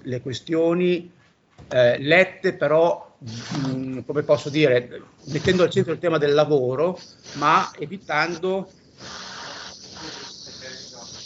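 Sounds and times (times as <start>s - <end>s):
speech: 0.0s - 9.2s
person blowing their nose into a microphone: 3.2s - 5.8s, 6.8s - 11.2s.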